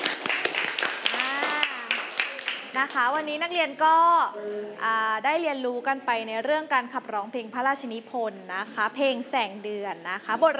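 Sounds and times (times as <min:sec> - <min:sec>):
class of students in a singing lesson clapping: 0:00.0 - 0:03.2
speech: 0:02.8 - 0:10.5.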